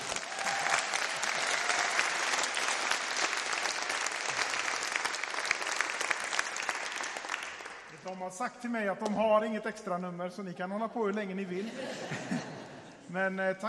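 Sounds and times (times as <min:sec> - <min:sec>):
audience applause: 0:00.0 - 0:08.0
speech: 0:08.2 - 0:12.5, 0:13.1 - 0:13.6
laughter: 0:11.6 - 0:13.0.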